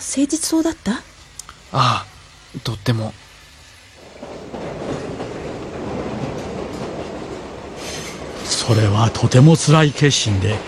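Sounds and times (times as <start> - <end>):
bright hiss: 0.0 - 10.6
train rolling on rails: 0.0 - 10.6
speech: 0.1 - 1.1, 1.7 - 3.2, 8.6 - 10.6.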